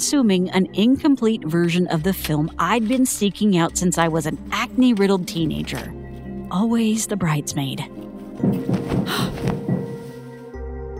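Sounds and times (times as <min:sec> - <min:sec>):
speech: 0:00.0 - 0:09.6
loud knocking on a door: 0:08.4 - 0:10.0.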